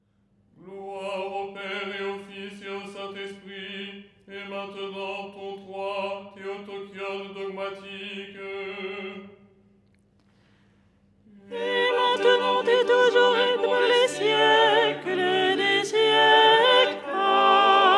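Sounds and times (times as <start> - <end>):
soprano singing: 11.5 - 17.9.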